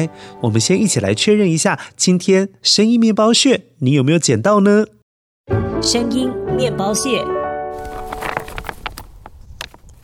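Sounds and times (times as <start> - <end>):
speech: 0.0 - 7.4
stones being picked up: 7.8 - 10.0.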